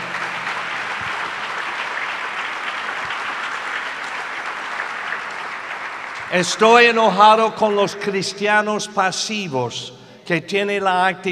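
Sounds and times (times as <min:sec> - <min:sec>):
audience applause: 0:00.0 - 0:06.9
speech: 0:06.3 - 0:11.2.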